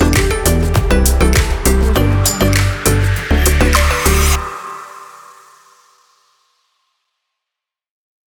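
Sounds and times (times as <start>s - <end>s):
tropical music: 0.0s - 5.8s.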